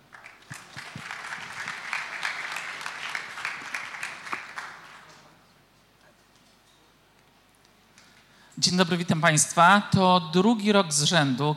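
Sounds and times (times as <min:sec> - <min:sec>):
audience applause: 0:00.0 - 0:05.4
speech: 0:08.6 - 0:11.5.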